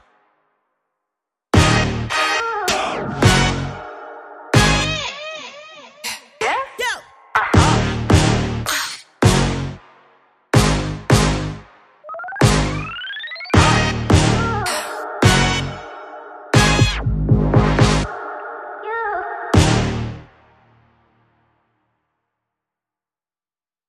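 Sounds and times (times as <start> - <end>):
music without drums or bass: 1.6 - 5.2, 7.5 - 18.1, 19.6 - 22.2.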